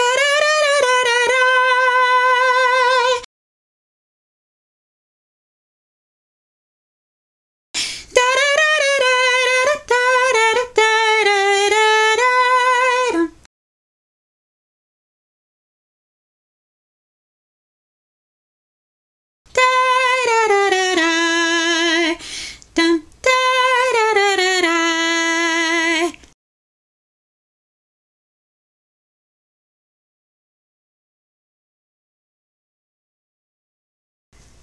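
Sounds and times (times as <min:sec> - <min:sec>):
soprano singing vocal drill: 0:00.0 - 0:03.3, 0:07.8 - 0:13.5, 0:19.5 - 0:26.3.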